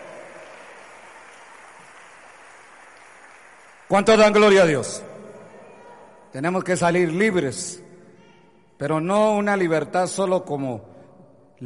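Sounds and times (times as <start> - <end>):
crowd applause: 0.0 - 4.4
speech: 3.9 - 5.1, 6.3 - 7.8, 8.8 - 10.9.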